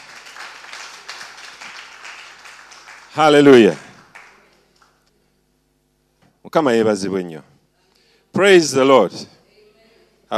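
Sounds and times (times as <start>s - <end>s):
audience clapping: 0.0s - 5.1s
speech: 3.1s - 3.8s, 6.5s - 7.5s, 8.4s - 9.3s.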